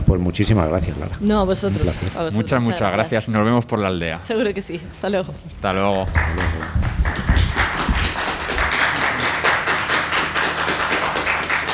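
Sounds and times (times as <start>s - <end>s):
speech: 0.1s - 6.8s
audience applause: 5.8s - 11.7s.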